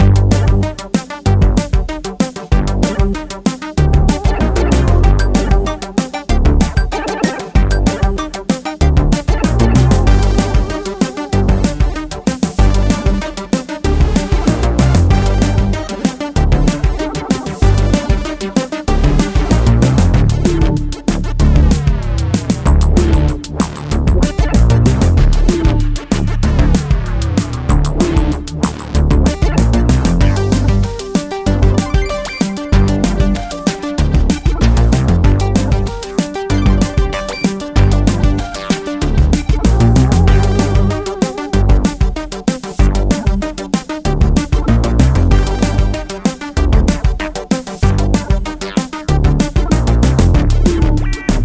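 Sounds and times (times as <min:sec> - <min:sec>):
boss fight music: 0:00.0 - 0:51.4.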